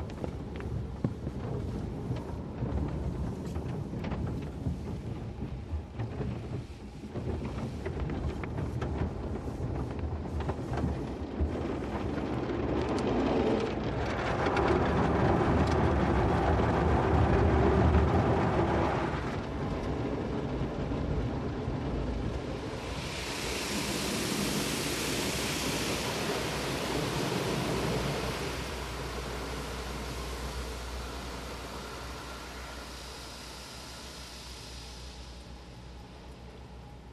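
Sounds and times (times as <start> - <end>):
automatic car wash heard from inside the car: 0.0 - 37.1.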